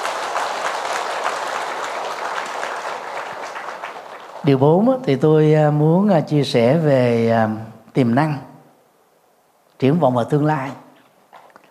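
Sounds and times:
loud applause from audience: 0.0s - 4.9s
speech: 4.4s - 8.5s, 9.8s - 10.8s.

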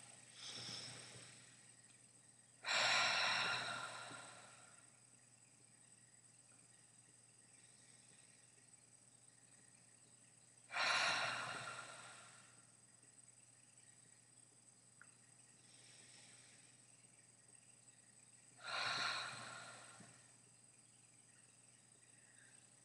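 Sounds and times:
Ujjayi breathing during a Manipura meditation: 2.6s - 4.8s, 10.7s - 12.6s, 18.6s - 20.2s.

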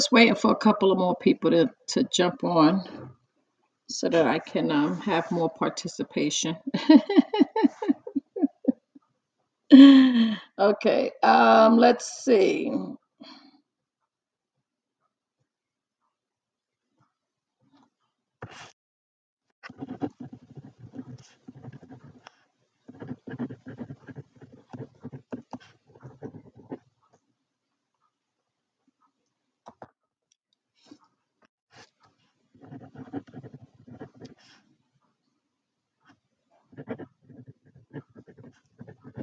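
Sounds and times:
speech: 0.0s - 3.2s, 3.9s - 7.4s, 9.7s - 13.4s
handwriting notes with a pen on paper: 4.1s - 5.8s, 18.4s - 18.7s, 19.6s - 26.9s, 31.8s - 34.6s, 36.0s - 39.2s
laughter: 6.7s - 8.8s.

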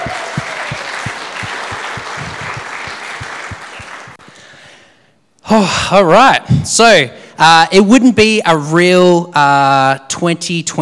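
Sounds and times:
audience round of applause: 0.0s - 4.2s
speech: 5.5s - 10.8s.

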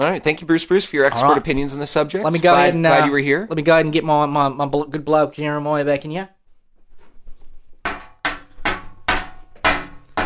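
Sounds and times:
speech: 0.0s - 6.4s
hammering: 6.8s - 10.2s.

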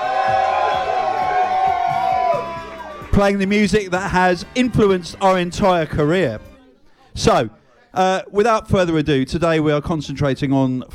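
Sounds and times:
large crowd cheering with whoops and shouts: 0.0s - 6.0s
speech: 3.2s - 6.5s, 7.2s - 10.9s.

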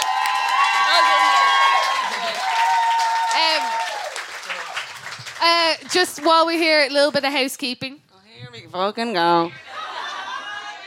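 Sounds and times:
whoops and cheers: 0.0s - 4.3s
live audience applause: 0.0s - 6.5s
speech: 5.8s - 9.6s
laughter: 9.5s - 10.8s.

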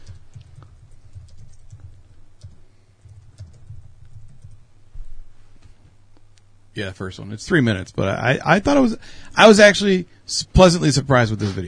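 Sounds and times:
computer keyboard typing a search: 0.0s - 4.7s
low hum: 0.0s - 11.6s
speech: 6.8s - 11.6s.

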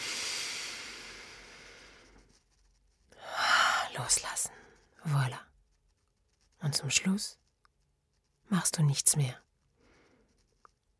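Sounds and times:
deep inhalation during a guided breathing exercise: 0.0s - 2.2s
speech: 4.0s - 5.5s, 6.6s - 7.4s, 8.5s - 9.4s.

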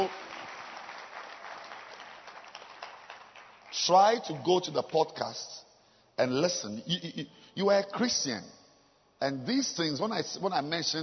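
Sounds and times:
church congregation clapping hands during a service: 0.0s - 5.4s
speech: 3.8s - 5.6s, 6.2s - 8.6s, 9.2s - 11.0s.

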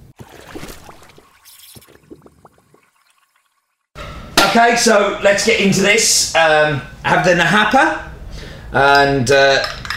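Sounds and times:
liquid poured while drinks are being mixed: 0.0s - 4.0s
speech: 4.5s - 8.1s, 8.7s - 9.8s.

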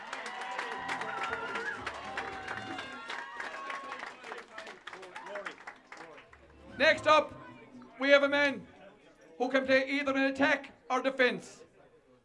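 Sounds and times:
audience applause: 0.0s - 6.7s
speech: 6.8s - 7.4s, 8.0s - 8.7s, 9.4s - 11.6s.

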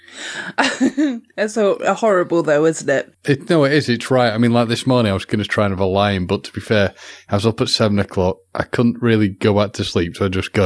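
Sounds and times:
speech: 0.4s - 10.6s
laughter: 0.5s - 1.2s, 3.5s - 10.6s
person sneezing: 7.0s - 7.4s.

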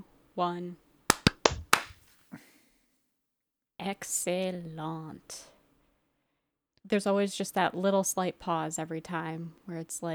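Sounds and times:
speech: 0.4s - 0.8s, 3.8s - 5.5s, 6.8s - 10.1s
hand claps for sync: 1.1s - 2.1s.

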